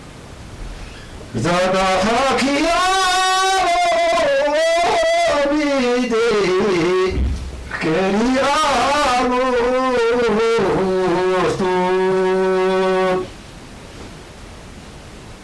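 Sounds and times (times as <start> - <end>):
folk song: 1.3 - 13.3.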